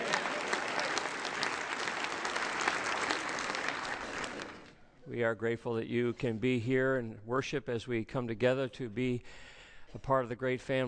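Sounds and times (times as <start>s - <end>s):
audience applauding: 0.0s - 4.7s
speech: 5.1s - 10.8s.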